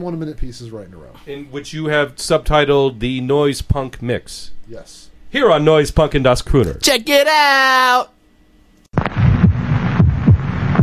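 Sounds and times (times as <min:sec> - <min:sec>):
speech: 0:00.0 - 0:08.2
human heartbeat: 0:09.0 - 0:10.8.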